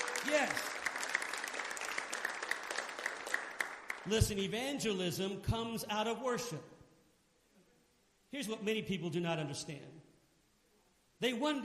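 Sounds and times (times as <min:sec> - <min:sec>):
audience clapping hands: 0:00.0 - 0:04.5
speech: 0:00.2 - 0:00.8, 0:04.0 - 0:06.7, 0:08.3 - 0:10.0, 0:11.2 - 0:11.6.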